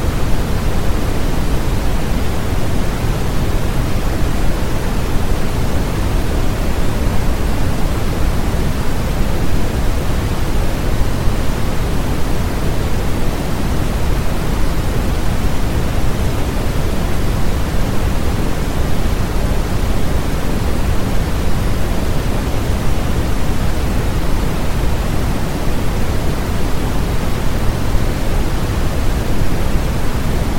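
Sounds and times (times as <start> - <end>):
white noise: 0.0 - 30.5.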